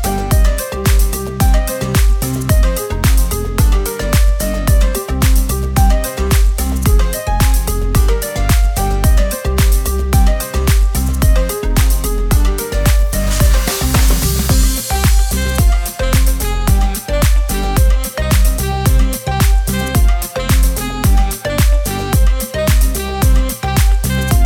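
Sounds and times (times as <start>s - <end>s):
funny dance house background music for video: 0.0s - 24.4s.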